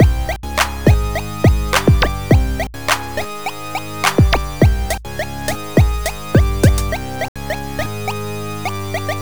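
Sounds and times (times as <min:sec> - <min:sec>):
music beat: 0:00.0 - 0:07.1.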